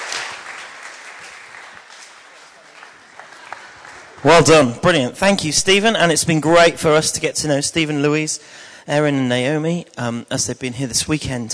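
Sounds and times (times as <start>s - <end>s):
audience applause: 0.0s - 4.8s
speech: 4.2s - 11.5s.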